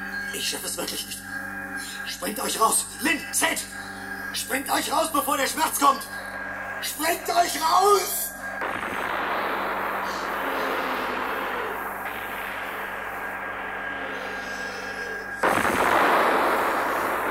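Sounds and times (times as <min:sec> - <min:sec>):
steady rumbling mechanical drone with faint high whine: 0:00.0 - 0:17.2
speech: 0:00.3 - 0:06.2, 0:06.8 - 0:08.7
loud explosion: 0:08.6 - 0:14.8, 0:15.4 - 0:17.2.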